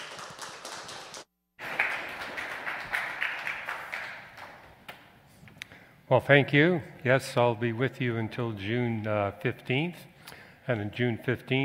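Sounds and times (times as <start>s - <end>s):
audience applause: 0.0s - 4.7s
speech: 6.1s - 10.1s, 10.7s - 11.6s.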